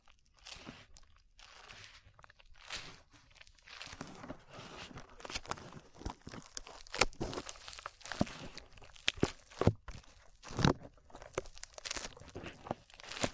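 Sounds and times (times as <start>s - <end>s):
slime squished and pulled: 0.1s - 13.3s.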